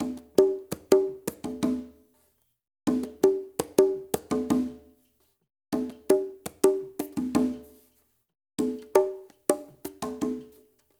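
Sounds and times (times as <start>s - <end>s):
congas: 0.0s - 1.9s, 2.9s - 4.9s, 5.8s - 7.8s, 8.6s - 10.6s.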